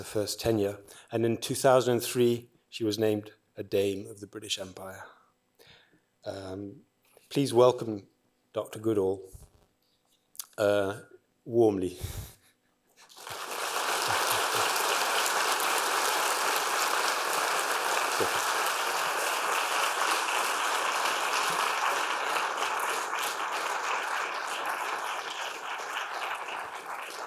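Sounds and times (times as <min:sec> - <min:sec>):
speech: 0:00.0 - 0:05.2, 0:06.2 - 0:09.4, 0:10.6 - 0:12.3
audience applause: 0:13.1 - 0:27.2.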